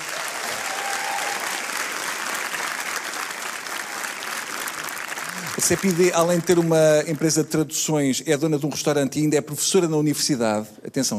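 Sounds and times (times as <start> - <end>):
audience applause: 0.0 - 7.5
speech: 5.6 - 11.1.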